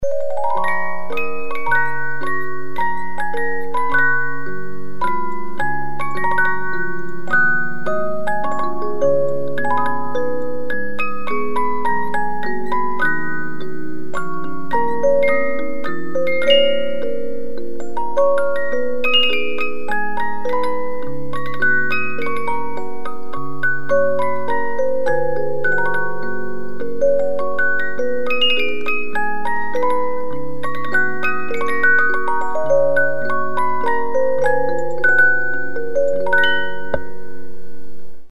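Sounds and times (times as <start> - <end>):
50-note music box movement: 0.0 - 38.0.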